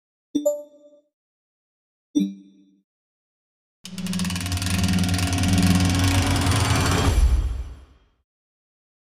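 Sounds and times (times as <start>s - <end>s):
base game sound: 3.9s - 8.0s.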